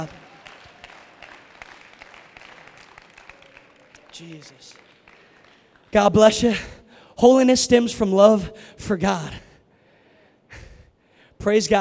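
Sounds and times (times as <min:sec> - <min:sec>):
speech: 0:00.0 - 0:00.2, 0:04.2 - 0:04.9, 0:05.9 - 0:09.5, 0:11.4 - 0:11.7
audience clapping hands: 0:00.0 - 0:06.6.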